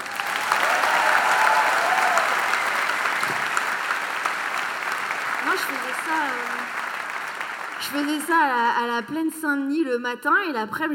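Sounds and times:
audience applause: 0:00.0 - 0:08.6
speech: 0:07.9 - 0:10.9.

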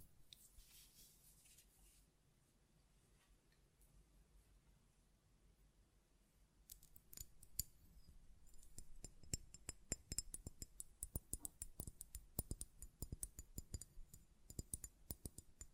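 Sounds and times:
tapping on glass perfume bottle: 0:08.5 - 0:15.7.

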